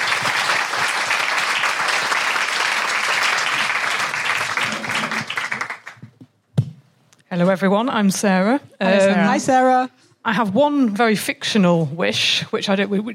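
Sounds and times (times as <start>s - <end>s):
audience applause: 0.0s - 6.1s
speech: 7.4s - 13.1s.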